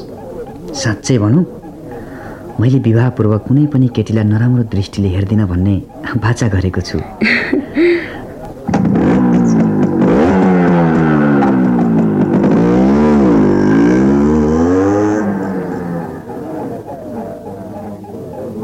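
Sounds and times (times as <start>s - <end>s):
speech: 0.7s - 1.6s, 2.6s - 8.1s
laughter: 5.8s - 12.2s, 14.0s - 18.6s
motorcycle engine running as the bike is ridden and parked: 8.6s - 18.6s.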